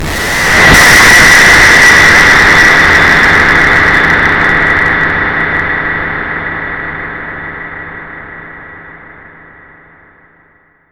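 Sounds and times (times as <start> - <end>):
supersonic explosions: 0.0 - 5.1.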